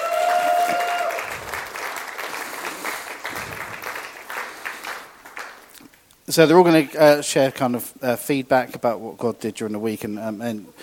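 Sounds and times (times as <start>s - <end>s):
audience applause: 0.0s - 5.8s
speech: 6.3s - 10.8s.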